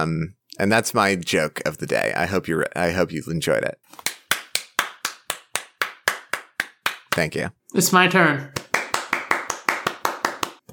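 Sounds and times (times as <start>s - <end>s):
speech: 0.0s - 4.1s, 7.2s - 8.6s
hand clapping: 3.9s - 7.4s, 8.5s - 10.7s.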